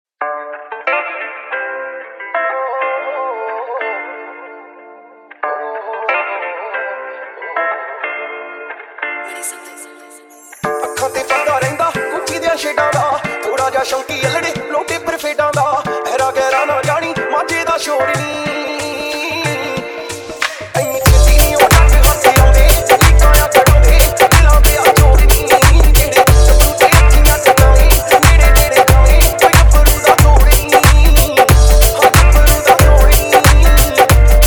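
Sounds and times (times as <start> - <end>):
dhol remix song: 10.4 - 34.4.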